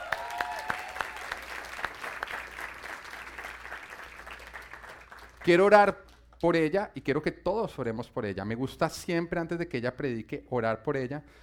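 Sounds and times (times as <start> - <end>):
audience applause: 0.0 - 5.6
speech: 5.5 - 11.4.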